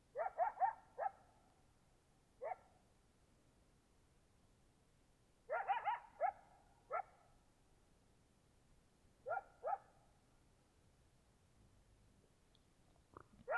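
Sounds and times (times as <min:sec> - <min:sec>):
coyote barks in Oregon: 0:00.1 - 0:01.4, 0:02.4 - 0:02.8, 0:05.5 - 0:07.2, 0:09.2 - 0:10.2, 0:13.2 - 0:13.5.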